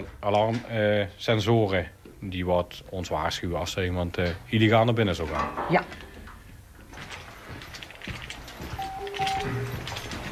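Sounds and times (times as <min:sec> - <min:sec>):
speech: 0:00.0 - 0:06.1
steady noise: 0:00.0 - 0:10.3
radio beeping for lost connection: 0:08.8 - 0:09.9.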